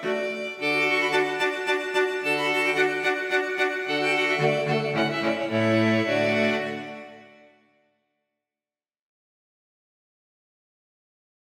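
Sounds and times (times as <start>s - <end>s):
string quartet playing a minuet: 0.0s - 7.6s.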